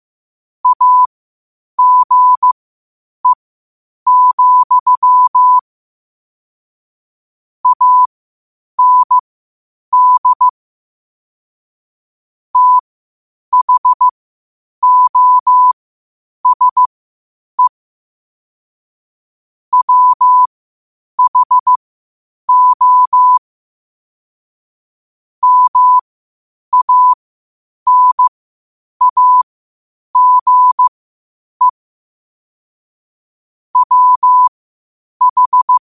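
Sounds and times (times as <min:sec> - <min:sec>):
morse code at 5 wpm: 0:00.6 - 0:01.1, 0:01.8 - 0:02.6, 0:04.1 - 0:05.6, 0:07.6 - 0:08.1, 0:08.8 - 0:09.2, 0:09.9 - 0:10.5, 0:12.6 - 0:12.8, 0:13.5 - 0:14.1, 0:14.8 - 0:15.8, 0:16.4 - 0:16.9, 0:19.7 - 0:20.5, 0:21.2 - 0:21.8, 0:22.5 - 0:23.4, 0:25.4 - 0:26.0, 0:26.7 - 0:27.2, 0:27.9 - 0:28.3, 0:29.0 - 0:29.5, 0:30.2 - 0:30.9, 0:33.8 - 0:34.5, 0:35.2 - 0:35.8.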